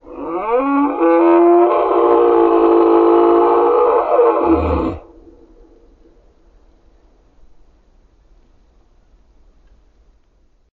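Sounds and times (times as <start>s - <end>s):
wildlife creature warning howl: 0.1s - 5.1s.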